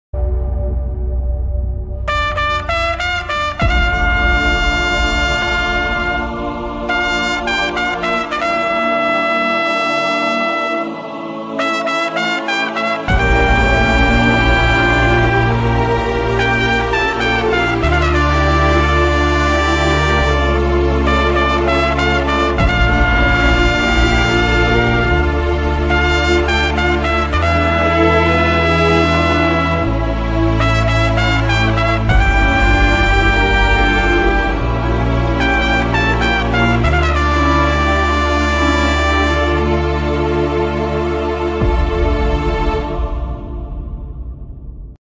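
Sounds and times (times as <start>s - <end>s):
film background music: 0.2s - 45.0s.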